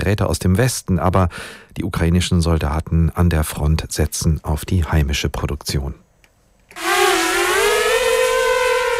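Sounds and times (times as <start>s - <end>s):
speech: 0.0s - 6.0s
drone flying over a hill: 6.7s - 8.9s.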